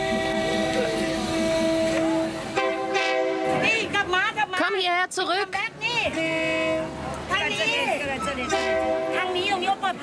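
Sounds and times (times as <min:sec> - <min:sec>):
train horn blasts: 0:00.0 - 0:04.0, 0:06.1 - 0:07.0, 0:08.4 - 0:09.4
speech: 0:05.1 - 0:10.0.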